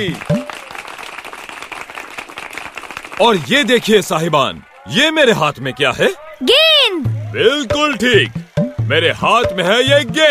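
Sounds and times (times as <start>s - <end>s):
speech: 0.0s - 0.4s, 3.2s - 6.6s, 7.3s - 10.2s
audience clapping: 0.0s - 5.1s.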